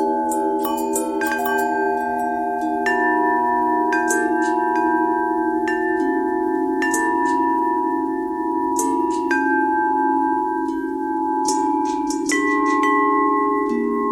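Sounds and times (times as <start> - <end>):
long bell with thread noise: 0.0 - 14.1.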